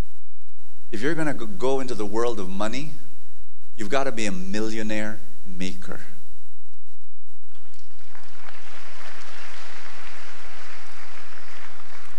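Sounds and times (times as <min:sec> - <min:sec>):
speech: 0:00.9 - 0:03.1, 0:03.8 - 0:06.2
audience clapping hands: 0:07.5 - 0:12.1.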